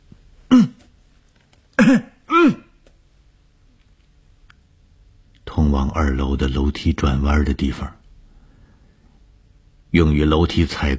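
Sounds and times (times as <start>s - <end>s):
speech: 0.5s - 0.8s, 1.9s - 2.6s, 6.0s - 8.0s, 9.9s - 10.9s
man coughing loudly while walking toward a staircase: 0.5s - 0.9s, 1.8s - 2.8s.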